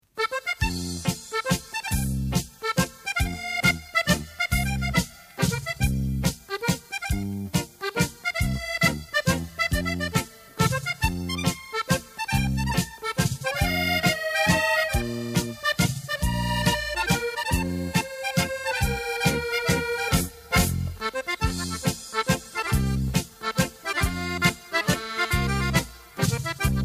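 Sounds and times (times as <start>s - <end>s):
accordion mazurka: 0.1s - 26.8s.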